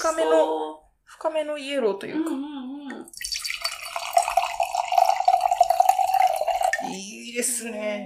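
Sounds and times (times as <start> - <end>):
speech: 0.1 - 3.2, 7.0 - 8.0
drink pouring into a glass: 3.1 - 7.0.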